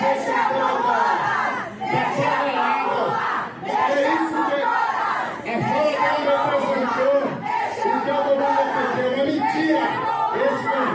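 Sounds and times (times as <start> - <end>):
crowd of women shouting protest slogans in unison: 0.0 - 10.9.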